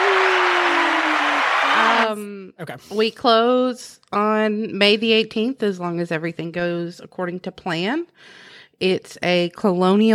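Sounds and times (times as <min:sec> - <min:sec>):
crowd applause sound effect: 0:00.0 - 0:02.2
speech: 0:02.1 - 0:10.1.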